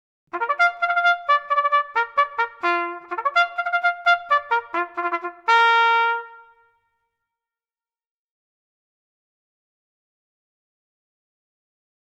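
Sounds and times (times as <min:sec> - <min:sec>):
American military bugle call: 0:00.3 - 0:06.6.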